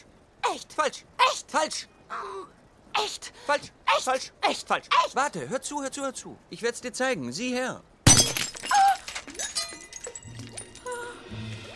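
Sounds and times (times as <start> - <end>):
speech: 0.5 - 7.9
fake glass ruby shattering: 8.0 - 11.0
falling pieces of fake glass ruby clinking: 8.1 - 11.1.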